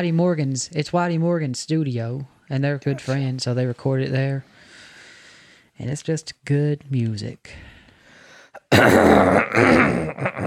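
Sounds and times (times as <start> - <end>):
speech: 0.0 - 4.6, 5.8 - 7.7, 8.7 - 10.4
person coughing: 8.6 - 10.4.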